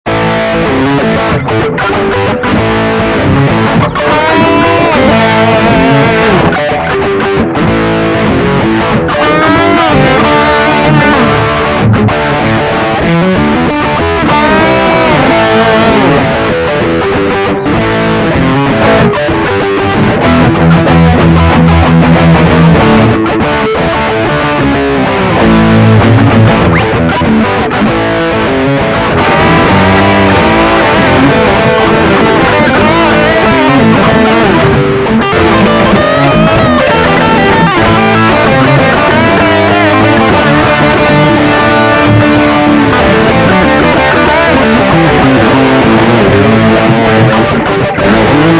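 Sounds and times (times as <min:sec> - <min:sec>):
12-bar improvisation: 0:00.1 - 0:48.5.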